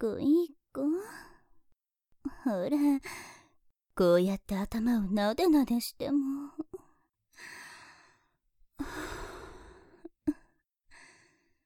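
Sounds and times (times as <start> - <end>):
speech: 0.0 - 1.2, 2.4 - 3.3, 4.0 - 6.4
sweet breathy sighs near the ear: 7.4 - 11.6.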